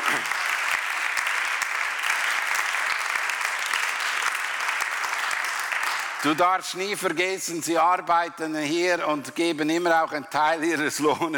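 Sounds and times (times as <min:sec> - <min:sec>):
audience applause: 0:00.0 - 0:06.6
speech: 0:06.2 - 0:11.3.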